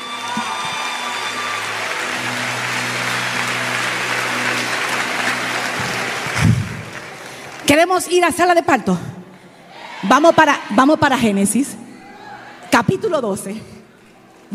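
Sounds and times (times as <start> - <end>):
crowd clapping: 0.0 - 8.8
speech: 7.7 - 9.1, 10.1 - 11.8, 12.8 - 13.8.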